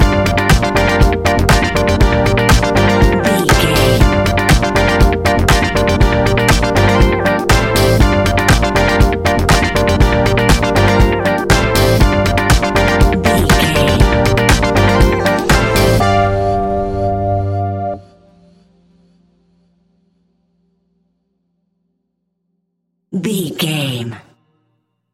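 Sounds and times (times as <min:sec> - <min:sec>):
relaxed chilling music: 0:00.0 - 0:18.7.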